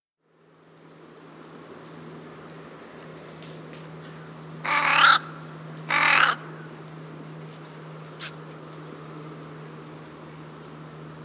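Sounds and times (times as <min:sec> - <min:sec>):
crow cawing: 0:04.6 - 0:06.6.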